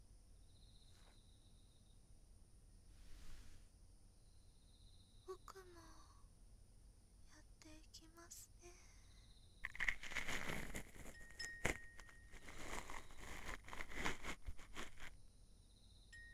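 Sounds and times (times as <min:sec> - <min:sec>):
ASMR ear cleaning of the right ear: 0:09.6 - 0:15.2.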